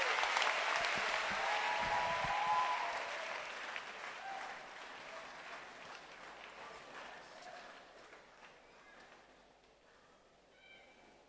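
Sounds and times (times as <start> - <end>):
crowd applauding: 0.0 - 8.9.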